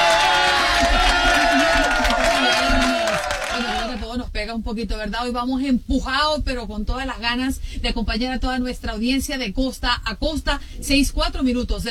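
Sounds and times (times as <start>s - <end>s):
applause sound effect: 0.0s - 4.0s
speech: 4.5s - 11.8s.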